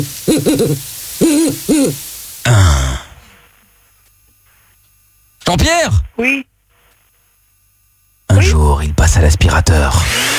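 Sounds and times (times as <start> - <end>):
owl hooting: 0.0 - 2.0
speech: 0.0 - 2.8, 5.5 - 6.5, 8.4 - 10.3.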